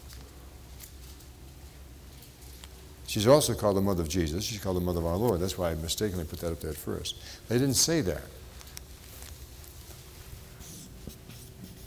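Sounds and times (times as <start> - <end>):
speech: 3.1 - 8.4
marker writing on a board: 10.6 - 11.8.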